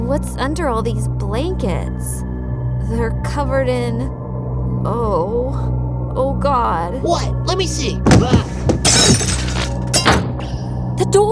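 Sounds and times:
speech: 0.2 - 4.2, 4.8 - 8.7
lamp falling: 8.0 - 10.5
glass shattering: 8.1 - 10.5.

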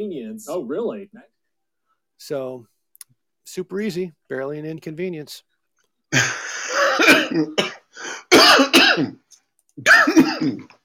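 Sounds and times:
speech: 0.0 - 1.4, 2.2 - 2.7, 3.5 - 5.5, 6.1 - 9.2, 9.8 - 10.8
person coughing and clearing throat: 6.1 - 9.2, 9.8 - 10.8.

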